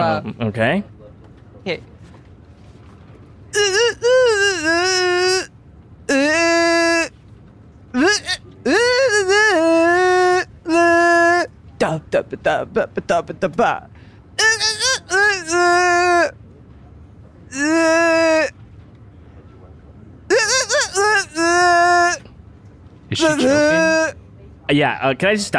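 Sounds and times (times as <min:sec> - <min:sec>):
speech: 0:00.0 - 0:01.0, 0:01.6 - 0:01.9, 0:08.1 - 0:08.8, 0:11.8 - 0:14.6, 0:17.5 - 0:18.5, 0:23.1 - 0:25.5
person humming a video game melody: 0:03.6 - 0:05.5, 0:06.1 - 0:07.1, 0:08.0 - 0:11.5, 0:14.4 - 0:16.3, 0:17.5 - 0:18.5, 0:20.3 - 0:22.2, 0:23.2 - 0:24.1.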